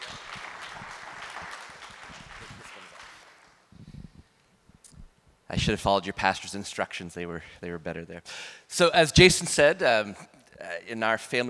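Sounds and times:
audience applause: 0:00.0 - 0:03.6
speech: 0:05.5 - 0:11.4.

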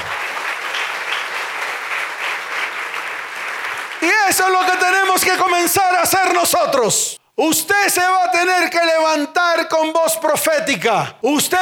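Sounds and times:
audience applause: 0:00.0 - 0:05.4
speech: 0:04.3 - 0:11.6.

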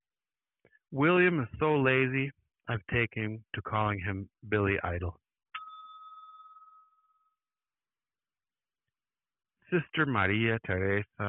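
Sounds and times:
speech: 0:00.9 - 0:05.2, 0:09.7 - 0:11.2
small bell ding: 0:05.6 - 0:07.4.

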